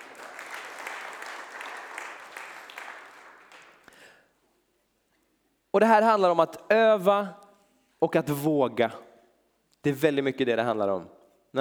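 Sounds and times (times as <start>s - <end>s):
applause from a small group: 0.0s - 4.2s
speech: 5.8s - 7.4s, 8.0s - 9.1s, 9.8s - 11.5s.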